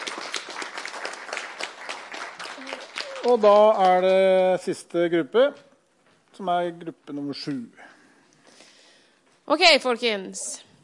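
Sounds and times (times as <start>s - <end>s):
audience applause for a group: 0.0s - 4.1s
speech: 3.2s - 5.7s, 6.4s - 7.9s, 9.5s - 10.7s.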